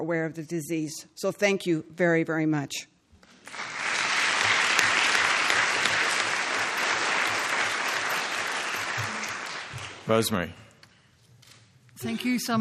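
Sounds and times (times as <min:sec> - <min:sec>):
speech: 0:00.0 - 0:02.9, 0:10.1 - 0:10.6, 0:12.0 - 0:12.5
audience applause: 0:03.4 - 0:10.4.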